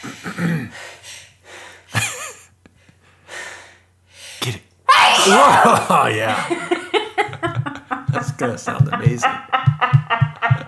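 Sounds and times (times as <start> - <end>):
speech: 0.0 - 0.8, 5.3 - 6.8, 8.4 - 9.6
person sneezing: 4.9 - 6.4
laughter: 5.1 - 10.6.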